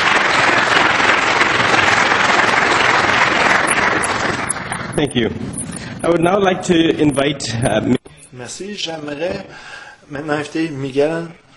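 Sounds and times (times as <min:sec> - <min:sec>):
audience applause: 0:00.0 - 0:05.0
speech: 0:05.0 - 0:11.4.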